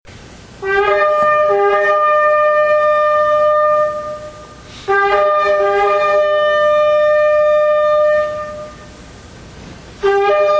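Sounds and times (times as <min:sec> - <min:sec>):
shofar: 0:00.6 - 0:09.0, 0:10.0 - 0:10.5.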